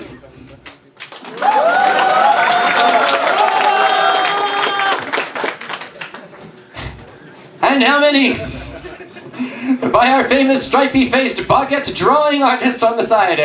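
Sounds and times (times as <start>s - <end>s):
crowd applauding: 0.6s - 7.3s
crowd whooping and cheering: 1.2s - 5.8s
laughter: 1.2s - 11.2s
speech: 7.8s - 8.5s, 9.9s - 13.4s.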